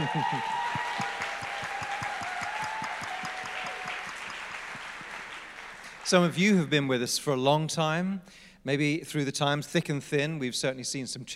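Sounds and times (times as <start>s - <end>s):
audience applause: 0.0s - 6.4s
speech: 0.1s - 0.6s, 6.1s - 11.3s.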